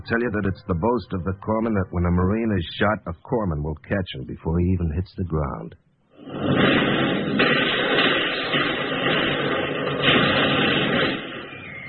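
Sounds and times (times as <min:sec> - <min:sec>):
speech: 0:00.0 - 0:05.8
artillery shells exploding in a war drama battle scene: 0:06.2 - 0:11.8.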